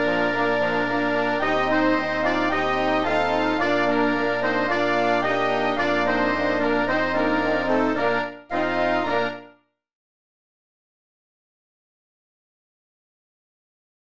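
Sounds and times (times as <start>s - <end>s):
tango brass band: 0.0s - 9.5s.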